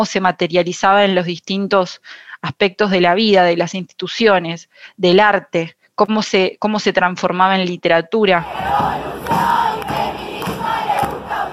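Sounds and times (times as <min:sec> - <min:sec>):
speech: 0:00.0 - 0:09.5
large crowd shouting a rhythmic protest chant: 0:08.4 - 0:11.5.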